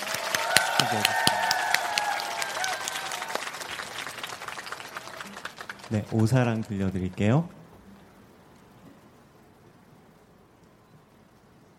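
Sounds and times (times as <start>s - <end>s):
audience applause: 0.0s - 7.6s
speech: 0.8s - 1.2s, 5.9s - 7.6s.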